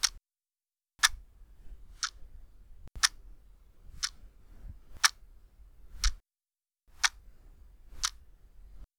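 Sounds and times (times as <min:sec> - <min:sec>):
clock: 0:00.0 - 0:00.2, 0:02.9 - 0:03.2, 0:04.0 - 0:04.2, 0:05.0 - 0:05.2, 0:06.0 - 0:06.2, 0:07.0 - 0:07.2, 0:08.0 - 0:08.2.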